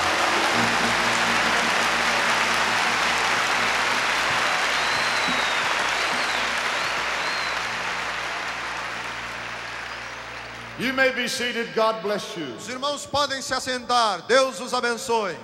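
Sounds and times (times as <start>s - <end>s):
audience applauding: 0.0s - 11.1s
speech: 10.8s - 15.4s.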